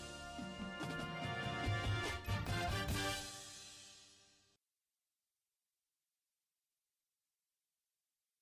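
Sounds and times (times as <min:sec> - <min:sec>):
bass with music: 0:00.0 - 0:03.4.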